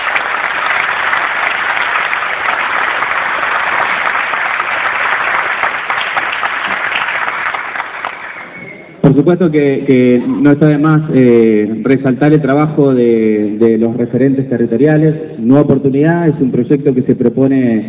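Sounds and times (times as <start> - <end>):
audience applause: 0.0 - 8.9
speech: 9.2 - 17.8.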